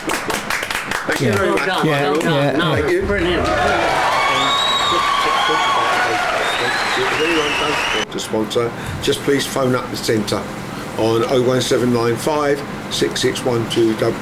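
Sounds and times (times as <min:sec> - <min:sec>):
room applause and cheering: 0:00.0 - 0:02.3, 0:02.9 - 0:08.1
speech: 0:01.2 - 0:04.2, 0:07.2 - 0:14.1.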